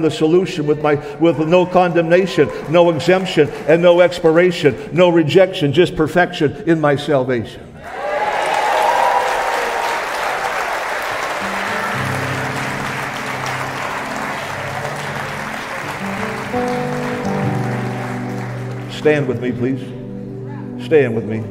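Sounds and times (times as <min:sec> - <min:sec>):
speech: 0:00.0 - 0:08.0, 0:19.0 - 0:20.0, 0:20.8 - 0:21.5
audience applause: 0:01.3 - 0:04.6, 0:07.8 - 0:19.5.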